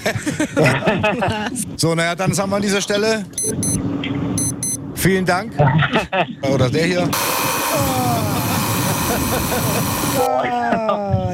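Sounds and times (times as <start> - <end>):
laughter: 0.0 - 1.7, 5.6 - 6.4, 7.8 - 11.2
speech: 0.0 - 4.2, 5.0 - 8.2, 9.1 - 11.3
alarm clock ringing: 7.2 - 10.3.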